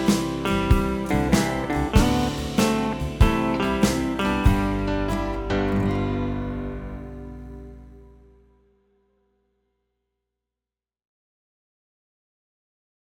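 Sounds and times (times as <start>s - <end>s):
slow-speed play-along guitar: 0.0s - 8.6s.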